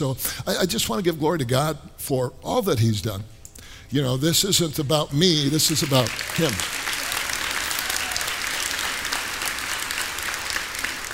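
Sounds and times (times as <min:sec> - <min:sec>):
speech: 0:00.0 - 0:06.8
audience applause: 0:05.6 - 0:11.1.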